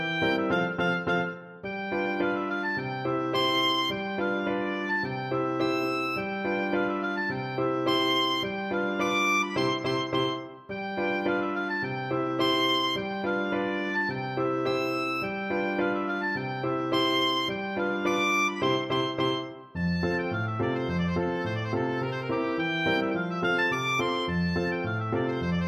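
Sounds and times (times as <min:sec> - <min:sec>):
oboe playing a holiday schottisch: 0:00.0 - 0:25.6.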